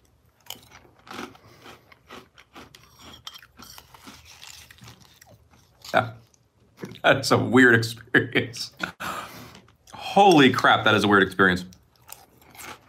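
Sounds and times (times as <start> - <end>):
chewing crunchy cinnamon cereal: 0.0 - 7.0, 11.7 - 12.8
speech: 5.9 - 6.2, 7.0 - 8.8, 10.2 - 11.8.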